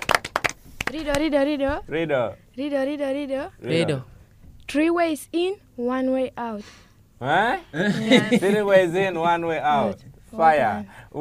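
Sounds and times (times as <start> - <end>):
group clapping for a correct answer: 0.0 - 1.3
speech: 0.9 - 4.1, 4.7 - 11.1
laughter: 7.8 - 9.2.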